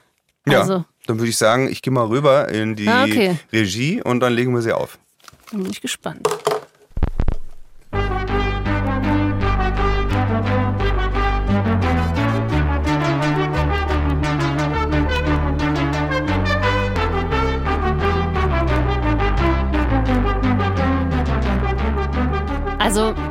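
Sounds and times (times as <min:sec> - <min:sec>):
speech: 0:00.5 - 0:06.5
brief thump: 0:06.5 - 0:07.6
classical music played on an early synthesizer: 0:07.9 - 0:23.2.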